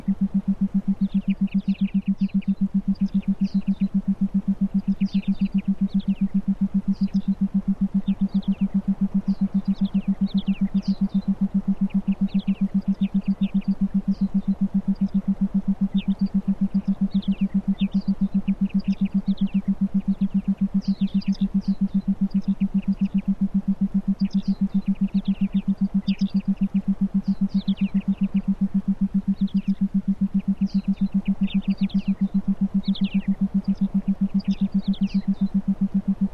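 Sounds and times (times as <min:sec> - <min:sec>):
forest ambience: 0:00.0 - 0:36.3
theta binaural beats for meditation: 0:00.0 - 0:36.3.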